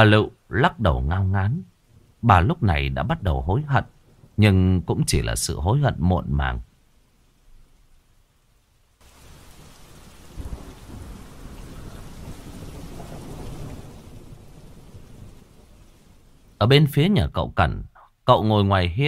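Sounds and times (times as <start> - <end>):
speech: 0.0 - 6.7, 16.6 - 19.0
heavy rain: 0.0 - 17.7
thunder: 9.6 - 15.8.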